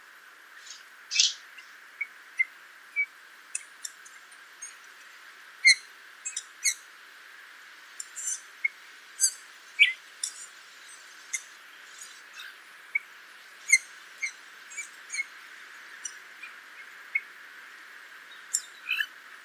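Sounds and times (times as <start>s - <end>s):
Eurasian bullfinch Pyrrhula pyrrhula calls: 0.6s - 3.9s, 5.6s - 6.8s, 8.0s - 17.3s, 18.4s - 19.1s.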